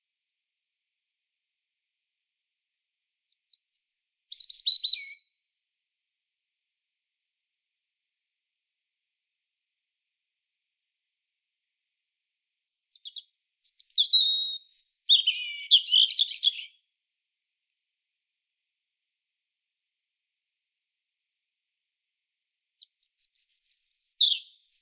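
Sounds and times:
European robin singing: 3.3 - 5.4, 12.7 - 16.8, 22.8 - 24.8.

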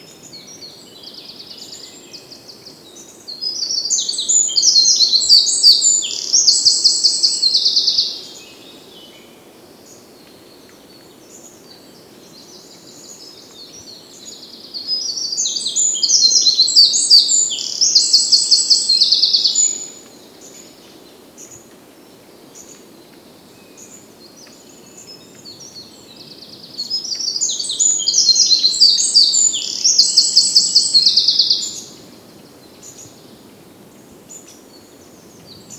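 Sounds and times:
quiet hiss: 0.0 - 35.7
Eurasian wren singing: 0.3 - 8.6, 12.5 - 20.7, 23.8 - 32.0.

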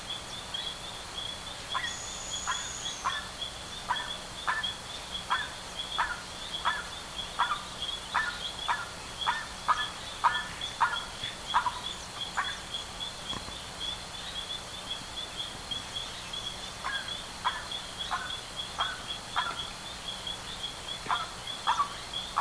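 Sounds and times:
bird calling buzzy notes: 0.0 - 22.3
hiss: 0.0 - 22.3.

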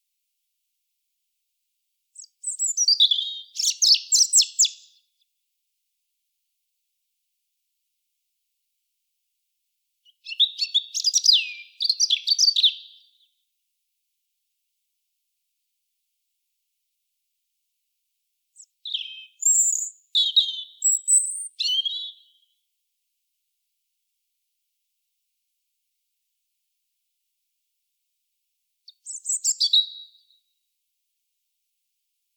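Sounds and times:
European robin singing: 2.2 - 5.1, 10.0 - 13.3, 18.6 - 22.4, 28.9 - 30.4.

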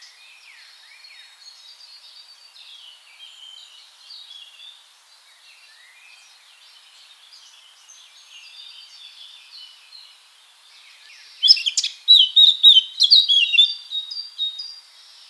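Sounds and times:
Eurasian blackcap Sylvia atricapilla song bursts: 11.4 - 14.6.

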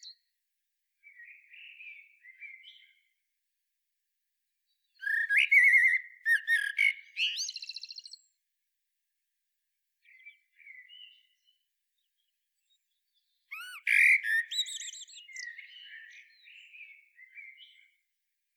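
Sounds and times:
common blackbird song: 0.0 - 0.3, 1.0 - 3.3, 4.5 - 8.4, 10.0 - 18.2.

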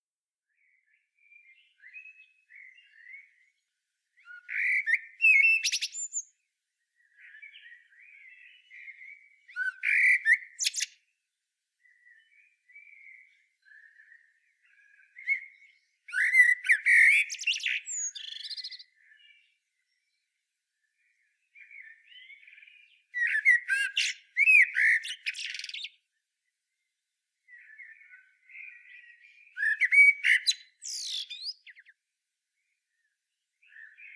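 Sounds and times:
common blackbird singing: 4.2 - 6.4, 7.0 - 11.1, 11.8 - 20.2, 21.0 - 26.2, 27.5 - 32.0, 32.6 - 34.1.

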